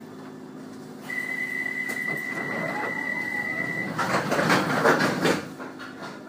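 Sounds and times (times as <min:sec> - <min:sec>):
doors: 0:01.8 - 0:06.2.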